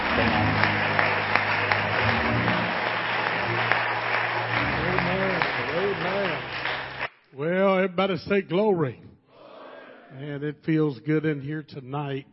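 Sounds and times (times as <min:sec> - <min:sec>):
audience hand clapping: 0:00.0 - 0:07.2
speech: 0:08.0 - 0:09.1, 0:10.2 - 0:12.3.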